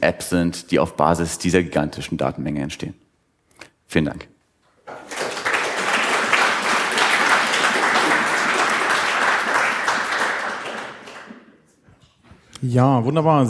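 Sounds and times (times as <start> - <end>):
speech: 0.0 - 3.0, 3.9 - 4.3, 12.6 - 13.4
spontaneous audience applause: 4.9 - 11.5.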